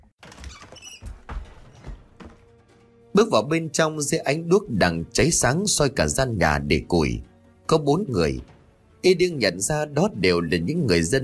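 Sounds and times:
door opening: 0:00.0 - 0:02.9
speech: 0:03.2 - 0:11.2.

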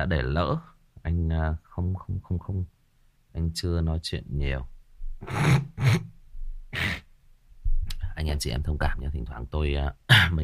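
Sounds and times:
speech: 0:00.0 - 0:02.8, 0:03.4 - 0:06.1, 0:08.2 - 0:10.4
sniffles from a stuffy nose during changing weather: 0:05.2 - 0:06.1, 0:06.7 - 0:07.1.

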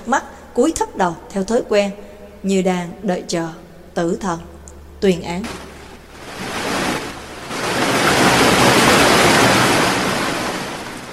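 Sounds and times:
speech: 0:00.1 - 0:05.7
giant wave crashing down: 0:05.4 - 0:11.1.

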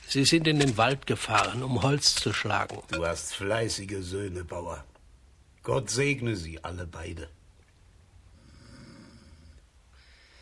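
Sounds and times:
speech: 0:00.1 - 0:04.9, 0:05.6 - 0:07.4
loud snoring: 0:08.4 - 0:09.6.

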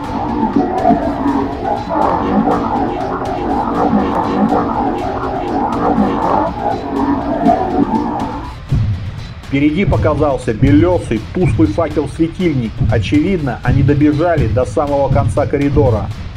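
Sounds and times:
deep infrabass monstrous voice roaring and growling: 0:00.0 - 0:08.6
speech: 0:09.5 - 0:16.3.

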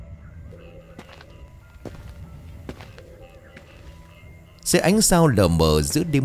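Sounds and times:
shuffling footsteps of slippers on dirt road: 0:01.0 - 0:04.3
speech: 0:04.7 - 0:06.2.

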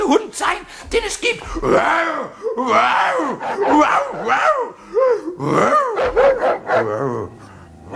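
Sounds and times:
speech: 0:00.1 - 0:05.8
wolfhound barking: 0:05.9 - 0:07.0.

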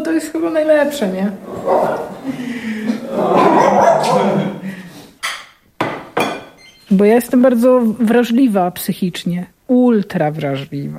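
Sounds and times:
speech: 0:00.1 - 0:04.8, 0:06.9 - 0:10.9
laughter: 0:01.4 - 0:04.9
dog barking: 0:01.5 - 0:02.3, 0:03.2 - 0:04.6.

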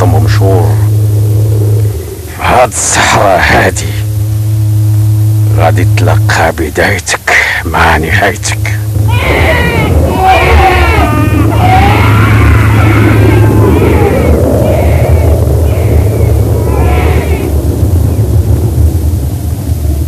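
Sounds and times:
strong wind in the desert after sunset: 0:00.0 - 0:06.5, 0:08.6 - 0:20.0
speech: 0:02.6 - 0:03.9, 0:05.6 - 0:09.7
infant crying in high strained wailing bursts: 0:09.1 - 0:17.5.

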